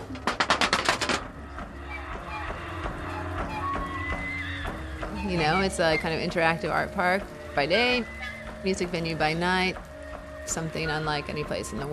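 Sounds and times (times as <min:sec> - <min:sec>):
clapboard house siding clapping as instrument: 0:00.0 - 0:01.3
low sustained hum: 0:01.3 - 0:11.9
speech: 0:05.3 - 0:09.9, 0:10.5 - 0:11.9.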